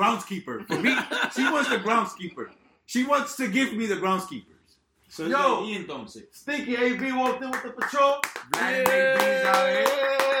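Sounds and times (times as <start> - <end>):
speech: 0.1 - 10.3
people clapping: 6.8 - 10.3.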